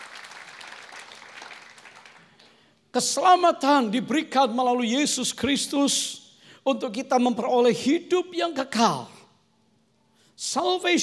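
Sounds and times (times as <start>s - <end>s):
audience applause: 0.0s - 2.4s
speech: 3.0s - 9.2s, 10.4s - 11.0s.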